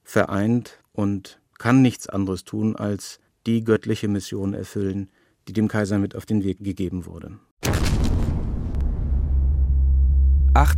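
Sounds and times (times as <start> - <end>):
speech: 0.1 - 8.0, 10.6 - 10.7
bomb explosion: 7.6 - 10.7.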